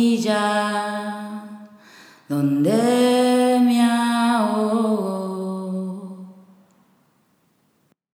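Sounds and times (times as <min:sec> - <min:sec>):
person singing in Spanish: 0:00.0 - 0:06.4.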